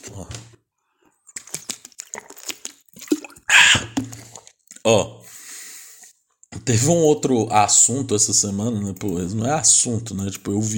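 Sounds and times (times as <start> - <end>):
speech: 0.2 - 0.5, 4.8 - 5.2, 6.7 - 10.7
person drinking water: 1.1 - 4.9.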